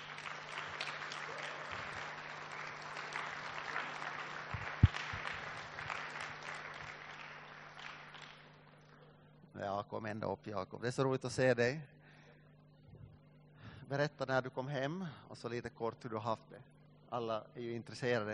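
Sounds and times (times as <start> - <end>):
audience applause: 0.0 - 8.5
speech: 9.7 - 12.0, 13.9 - 18.3.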